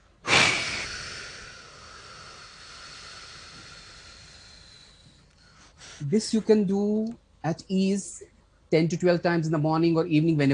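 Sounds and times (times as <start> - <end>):
whooshing exhale through the mouth: 0.2 - 5.1
speech: 6.0 - 10.5.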